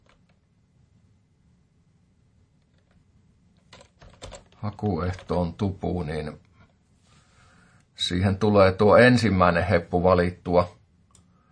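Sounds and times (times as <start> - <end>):
computer keyboard typing into a search field: 0.0 - 0.4, 3.6 - 5.5
speech: 4.6 - 6.5, 8.1 - 10.8.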